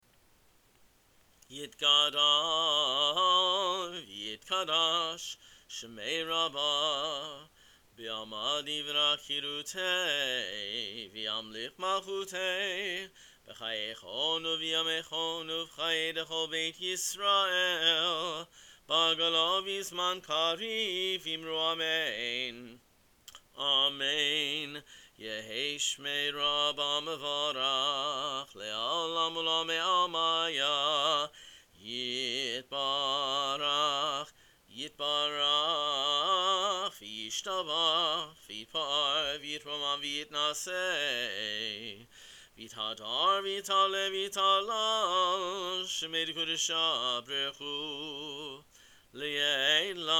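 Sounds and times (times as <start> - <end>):
kaddish prayer chanting for musaf: 1.5 - 22.8, 23.6 - 48.6, 49.2 - 50.1.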